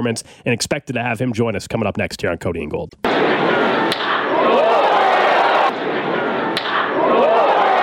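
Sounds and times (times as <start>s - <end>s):
speech: 0.0s - 4.6s
continuous noisy background with voices: 3.0s - 7.8s
baseball struck off the bat for a home run: 3.9s - 4.3s, 6.5s - 7.0s.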